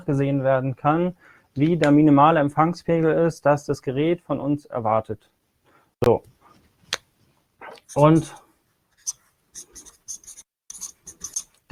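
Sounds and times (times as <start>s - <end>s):
speech: 0.0s - 5.4s, 6.0s - 6.3s, 7.9s - 8.4s
pen handwriting on a device list: 7.9s - 8.4s, 9.0s - 11.6s.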